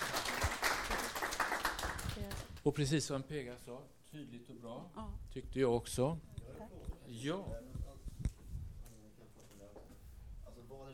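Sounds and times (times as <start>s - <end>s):
small group hand clapping at a discussion session: 0.0s - 2.6s
speech: 2.6s - 7.8s, 10.7s - 10.9s.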